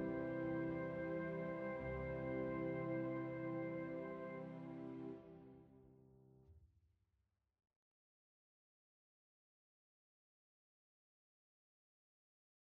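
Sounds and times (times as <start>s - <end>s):
organ invention on contemporary instruments: 0.0s - 5.9s.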